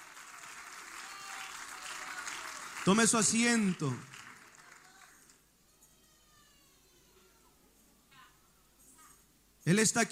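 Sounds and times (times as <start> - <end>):
audience clapping hands: 0.0 - 5.4
speech: 2.8 - 4.1, 9.7 - 10.0.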